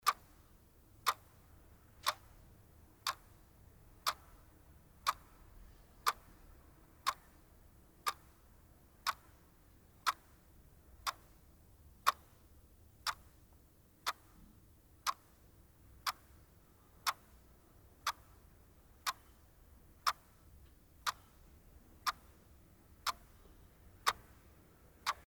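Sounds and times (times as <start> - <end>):
clock: 0.0 - 0.4, 1.0 - 1.4, 2.0 - 2.4, 3.0 - 3.4, 4.0 - 5.4, 6.0 - 6.4, 7.0 - 7.4, 8.0 - 8.4, 9.0 - 9.4, 10.0 - 10.4, 11.0 - 11.4, 12.0 - 12.4, 13.0 - 13.4, 14.0 - 14.4, 15.0 - 15.4, 16.0 - 22.4, 23.0 - 24.4, 25.0 - 25.2.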